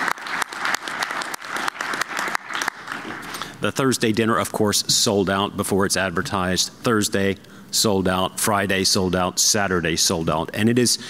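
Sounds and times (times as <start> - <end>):
audience applause: 0.0 - 3.4
speech: 3.6 - 11.0.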